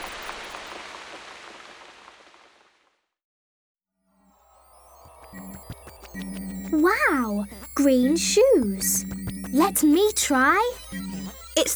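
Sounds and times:
rain pouring from a rain machine: 0.0 - 2.8
bright electronic tones: 4.2 - 11.7
speech: 5.6 - 11.0, 11.6 - 11.7.

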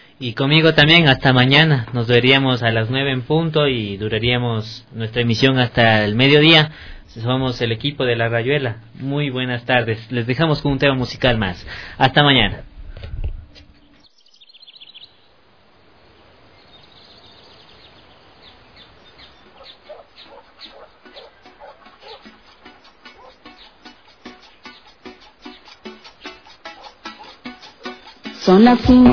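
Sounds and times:
speech: 0.2 - 13.3, 28.6 - 29.1
roosters crowing: 18.5 - 28.2.

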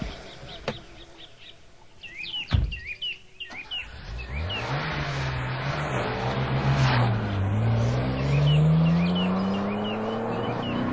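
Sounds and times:
birds chirping: 0.0 - 5.5, 6.3 - 10.9
sharp thump: 2.5 - 2.9
luxury car engine revving and accelerating hard on a highway: 3.5 - 10.9.

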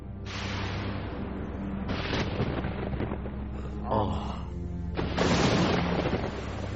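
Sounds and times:
heavy rain: 0.3 - 6.7
thunder: 1.9 - 3.4, 5.0 - 6.7.

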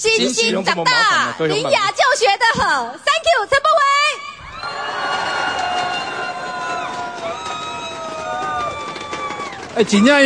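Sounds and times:
speech: 0.0 - 4.0, 9.8 - 10.2
crowd screaming and cheering: 4.4 - 10.2.

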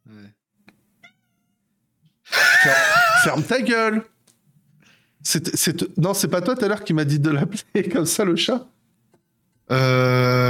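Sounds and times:
cat at a door meowing: 1.0 - 1.7
laughter: 2.3 - 3.7
speech: 2.7 - 4.1, 5.2 - 8.8, 9.7 - 10.1.

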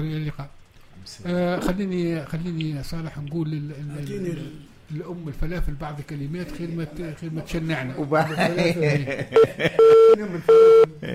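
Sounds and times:
speech: 0.0 - 11.1
laughter: 8.1 - 11.1
telephone beeps after a phone line is cut off: 9.4 - 11.1.

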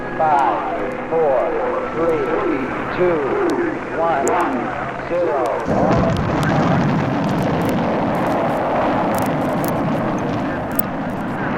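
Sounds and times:
Apollo 11 rocket liftoff roar: 0.0 - 11.5
speech: 0.2 - 7.0.

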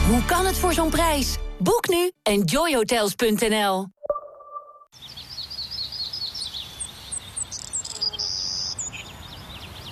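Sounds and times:
speech: 0.1 - 3.9
birds singing in high bright chirps and trills: 4.9 - 9.8.

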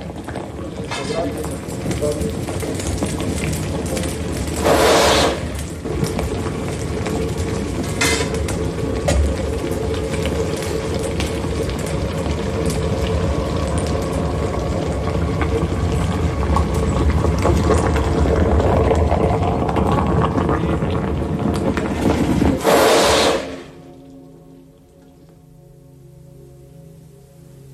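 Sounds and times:
molten bell metal bubbling and gurgling into molds during bell casting: 0.0 - 25.8
molten bell metal hissing into molds: 4.4 - 6.4, 22.6 - 23.8.

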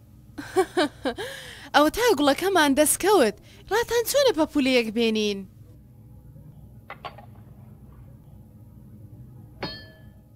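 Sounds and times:
speech: 0.5 - 5.5
struck bowl ringing: 9.6 - 10.3.

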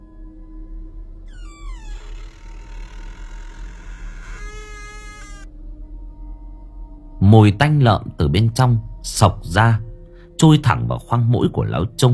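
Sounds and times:
old unoiled door creaking open: 1.3 - 5.5
speech: 7.3 - 12.1.

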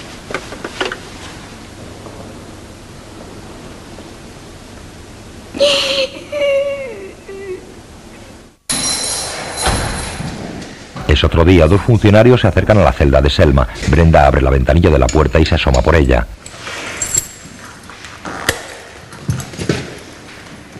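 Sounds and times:
hiss: 0.0 - 19.2
woman sobbing inconsolably, face covered with her hands: 5.5 - 7.8
speech: 11.2 - 16.4.

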